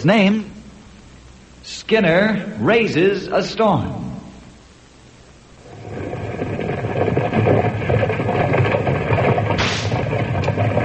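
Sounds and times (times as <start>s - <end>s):
speech: 0.0s - 0.6s, 1.6s - 4.0s
creaking wagon load: 5.6s - 10.8s
heavy wagon wheels rumbling: 5.6s - 10.8s
mule hooves: 5.6s - 10.8s
sharp crack: 9.5s - 10.2s.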